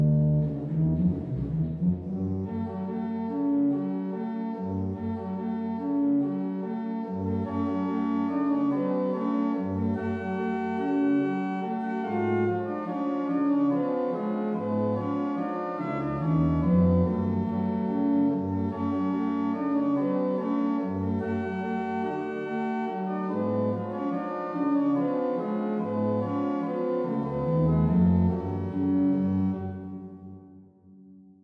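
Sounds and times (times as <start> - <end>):
solo organ pedal waltz: 0.0 - 30.4.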